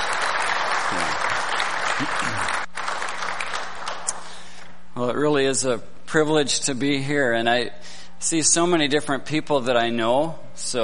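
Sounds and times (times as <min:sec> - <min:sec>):
congregation clapping at a Sunday-morning church service in Eagle River, Alaska: 0:00.0 - 0:04.4
speech: 0:05.0 - 0:10.8.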